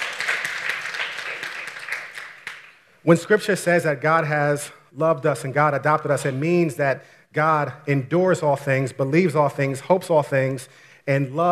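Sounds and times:
audience applause: 0.0s - 2.9s
speech: 3.0s - 11.5s.

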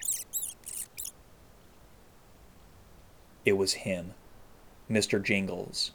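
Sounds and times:
mouse squeaking: 0.0s - 1.2s
speech: 3.4s - 4.2s, 4.9s - 5.9s.

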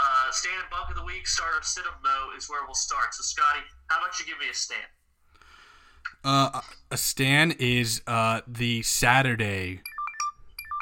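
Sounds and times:
speech: 0.4s - 5.0s, 6.2s - 9.9s
video call ringtone chiming on a phone: 9.8s - 10.8s.

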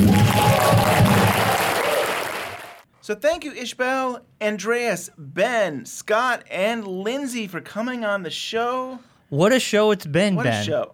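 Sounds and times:
audience clapping: 0.0s - 2.8s
faint cheering: 0.0s - 2.8s
speech: 3.1s - 10.9s.

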